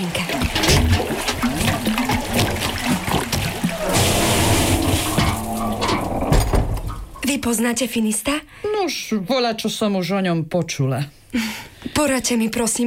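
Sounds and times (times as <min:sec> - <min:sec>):
water pouring and splashing: 0:00.0 - 0:07.4
speech: 0:07.4 - 0:12.8.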